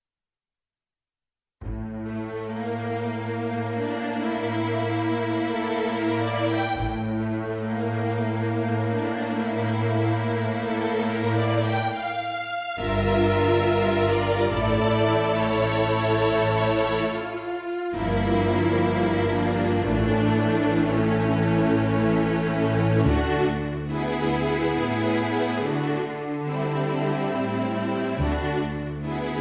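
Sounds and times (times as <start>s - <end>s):
string orchestra playing an adagietto: 1.6s - 29.3s.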